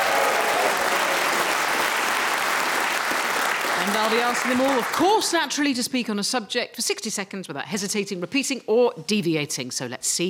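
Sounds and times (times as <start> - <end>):
live studio audience whooping, cheering and applauding: 0.0 - 4.9
speech: 3.9 - 10.2.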